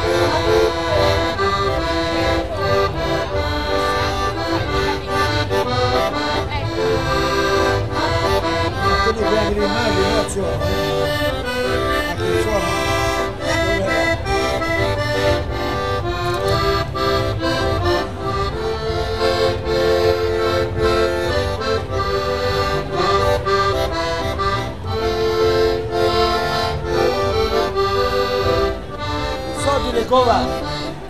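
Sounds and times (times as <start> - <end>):
accordion at Ferragosto: 0.0 - 31.0.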